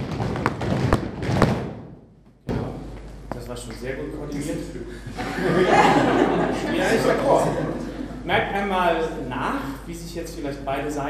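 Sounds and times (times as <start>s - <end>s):
foot stamping firmly: 0.0s - 3.8s
speech: 3.5s - 11.0s
laughter: 4.4s - 8.5s.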